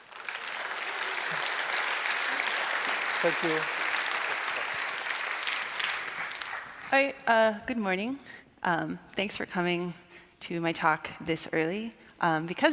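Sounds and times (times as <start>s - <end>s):
audience applause: 0.0s - 7.1s
speech: 3.2s - 3.8s, 6.9s - 12.7s.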